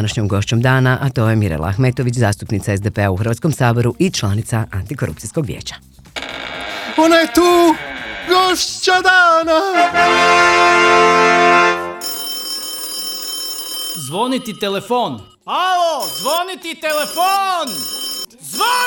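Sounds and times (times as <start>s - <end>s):
speech: 0.0s - 5.9s, 7.0s - 11.8s, 14.0s - 18.8s
telephone ringing: 6.2s - 8.6s, 12.0s - 15.4s, 16.0s - 18.8s.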